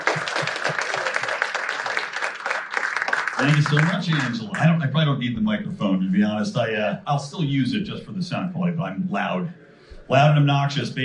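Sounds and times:
laughter: 0.0s - 2.2s, 3.4s - 9.4s
libertarian event audience applause greeting a speaker: 0.0s - 4.8s
speech: 3.4s - 11.0s.

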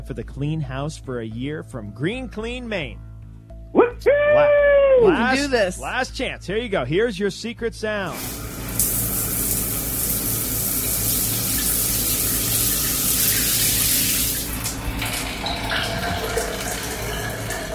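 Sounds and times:
speech: 0.1s - 3.1s, 4.0s - 8.4s
shower running: 8.1s - 17.7s.

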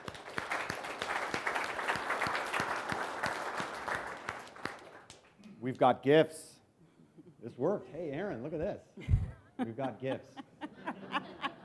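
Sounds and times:
audience applause: 0.0s - 5.2s
speech: 5.6s - 6.5s, 7.4s - 10.4s
laughter: 9.0s - 11.6s.

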